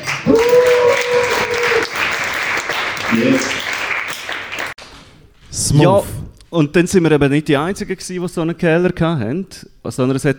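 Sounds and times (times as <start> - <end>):
audience applause: 0.0 - 4.8
long sustained cheer: 0.0 - 4.8
speech: 5.7 - 10.3.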